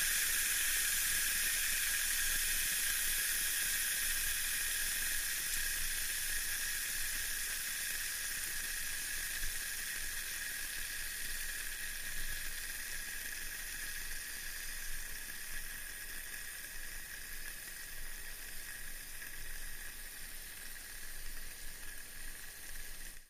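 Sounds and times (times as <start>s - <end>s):
fizzing bubbles swirling: 0.0s - 23.2s.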